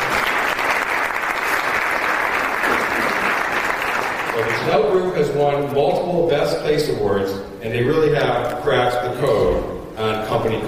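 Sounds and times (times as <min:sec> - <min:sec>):
audience applause: 0:00.0 - 0:05.1
speech: 0:04.5 - 0:10.6.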